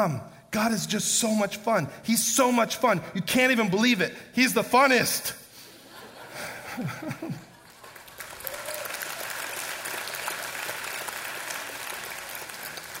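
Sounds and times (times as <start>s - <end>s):
speech: 0.0s - 5.4s, 6.8s - 7.5s
laughter: 5.6s - 7.8s
audience clapping: 7.2s - 12.9s.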